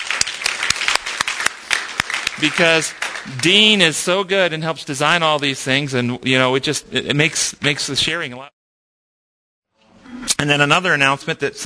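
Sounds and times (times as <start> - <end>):
audience crowd clapping: 0.0 - 4.2
speech: 2.4 - 8.6, 10.3 - 11.6.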